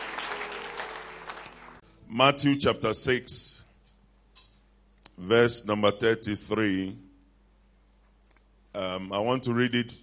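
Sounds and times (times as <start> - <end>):
audience applause: 0.0 - 1.8
speech: 2.1 - 3.6, 5.2 - 7.0, 8.8 - 10.0.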